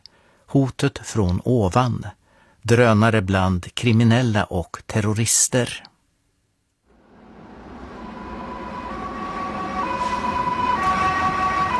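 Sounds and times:
speech: 0.5s - 5.9s
low traffic rumble: 6.9s - 11.7s
police car sirens wailing: 7.1s - 11.7s.

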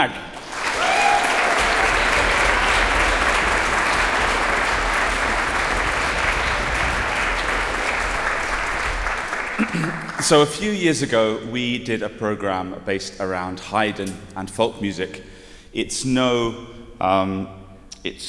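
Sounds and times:
speech: 0.0s - 0.3s, 9.7s - 18.2s
audience applause at a concert: 0.3s - 10.7s.

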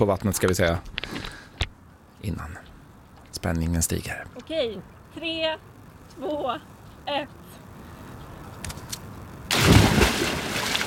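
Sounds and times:
speech: 0.0s - 1.3s, 2.2s - 2.7s, 3.4s - 7.4s
person jumping with a splash into water: 9.5s - 10.8s.

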